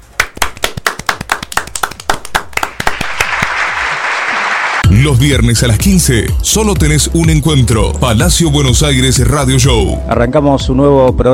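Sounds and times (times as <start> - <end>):
applause: 0.2 - 4.9
speech: 5.0 - 11.3.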